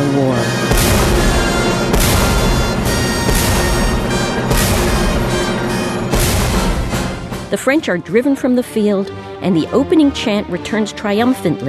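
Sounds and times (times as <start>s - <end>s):
orchestral music: 0.0s - 11.6s
cannon shots in orchestral music: 0.7s - 7.5s
speech: 7.6s - 11.6s.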